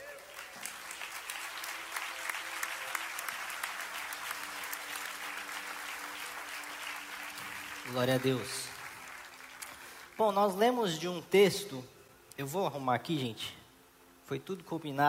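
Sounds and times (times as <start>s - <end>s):
audience applauding: 0.0s - 10.4s
speech: 7.9s - 8.7s, 10.2s - 13.6s, 14.3s - 15.0s.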